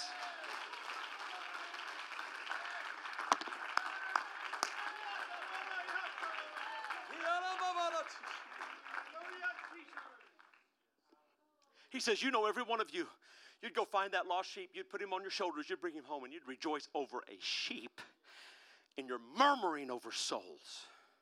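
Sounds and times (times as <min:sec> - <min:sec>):
audience clapping hands in praise: 0:00.0 - 0:10.8
speech: 0:12.0 - 0:18.0, 0:19.0 - 0:20.9.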